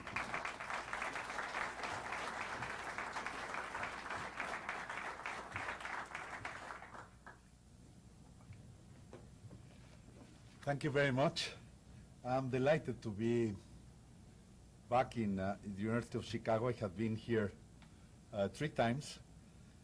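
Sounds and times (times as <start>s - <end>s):
audience at the University of Chicago applauding to welcome Dr. Pedro Aspe: 0.0s - 7.4s
speech: 10.7s - 11.6s, 12.2s - 13.7s, 14.9s - 17.6s, 18.4s - 19.3s.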